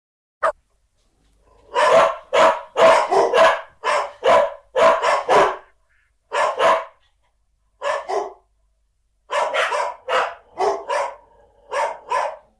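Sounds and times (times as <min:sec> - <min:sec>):
dog barking: 0:01.5 - 0:07.1, 0:07.8 - 0:08.5, 0:09.3 - 0:12.5.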